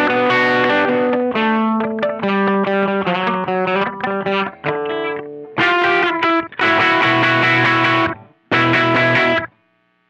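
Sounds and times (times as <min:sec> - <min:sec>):
slow electric guitar riff: 0:00.0 - 0:09.6.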